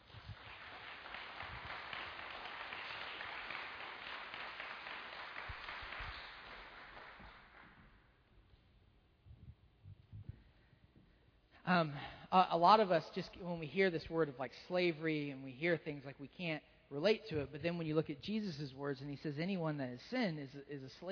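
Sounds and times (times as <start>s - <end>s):
audience applause at a church gathering: 0.0s - 7.6s
speech: 11.7s - 21.1s.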